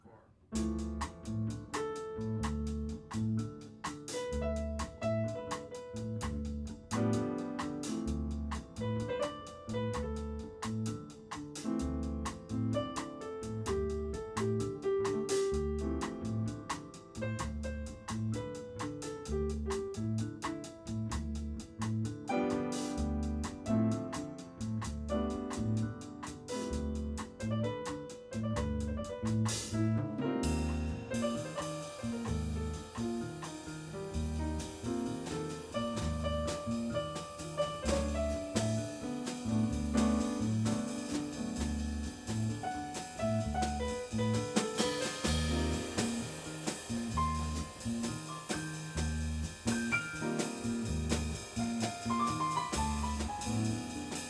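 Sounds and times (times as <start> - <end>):
jazz solos: 0.5 - 54.2.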